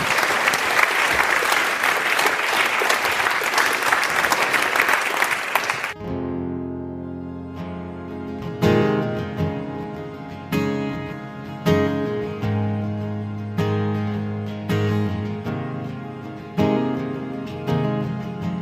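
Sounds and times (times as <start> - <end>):
crowd applauding: 0.0 - 6.0
music with sustained tones: 6.0 - 18.6.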